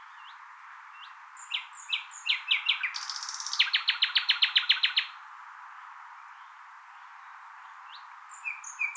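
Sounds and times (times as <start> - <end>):
common nightingale singing: 1.0 - 5.2, 7.9 - 8.9.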